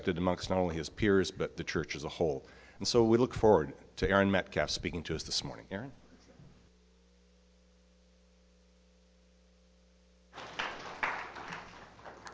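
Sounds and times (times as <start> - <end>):
speech: 0.0 - 6.0
low electrical hum: 0.0 - 12.3
audience applause: 10.4 - 12.3.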